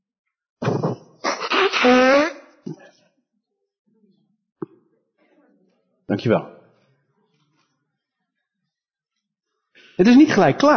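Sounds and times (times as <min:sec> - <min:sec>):
nose blowing: 0:00.6 - 0:02.8
speech: 0:06.1 - 0:06.6, 0:10.0 - 0:10.7.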